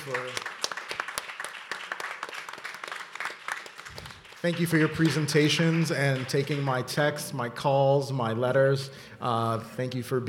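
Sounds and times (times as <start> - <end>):
speech: 0.0 - 0.5, 4.4 - 10.2
audience applause: 0.0 - 6.6.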